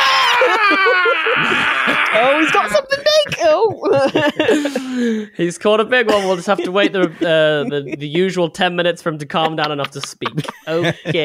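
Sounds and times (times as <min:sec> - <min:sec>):
person screaming wordlessly: 0:00.0 - 0:03.2
laughter: 0:00.1 - 0:05.3, 0:05.9 - 0:08.5, 0:09.1 - 0:11.2
speech: 0:00.5 - 0:11.2.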